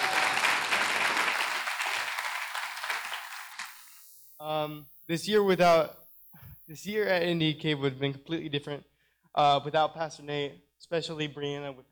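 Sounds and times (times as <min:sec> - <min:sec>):
crowd applauding: 0:00.0 - 0:03.9
speech: 0:04.4 - 0:06.0, 0:06.7 - 0:11.8.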